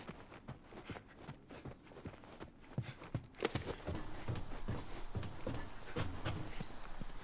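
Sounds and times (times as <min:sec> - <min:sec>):
environmental ambience from inside to outdoors: 0:00.0 - 0:07.2.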